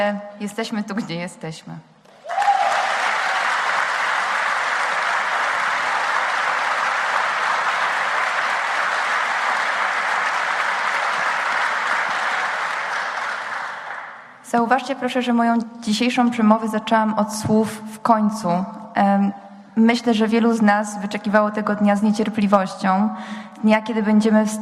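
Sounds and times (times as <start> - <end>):
speech: 0.0 - 2.0, 14.5 - 24.5
audience applause at a graduation ceremony: 2.1 - 14.4.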